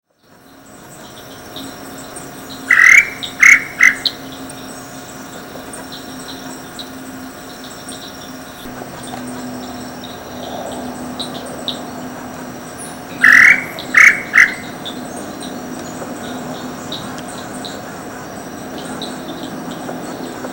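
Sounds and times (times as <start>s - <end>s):
tataupa tinamou call at Picinguaba, Ubatuba, São Paulo state, Brazil: 2.7s - 4.2s, 13.2s - 14.8s.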